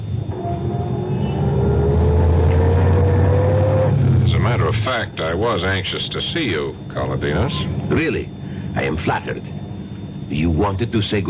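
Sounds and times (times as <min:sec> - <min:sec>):
Rolls-Royce engine driving off: 0:00.0 - 0:04.7
speech: 0:05.0 - 0:09.6, 0:10.3 - 0:11.2.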